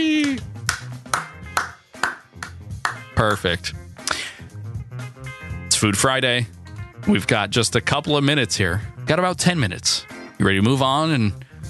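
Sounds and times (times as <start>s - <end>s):
slow clap: 0.1s - 3.4s
speech: 3.2s - 3.8s, 5.8s - 11.5s.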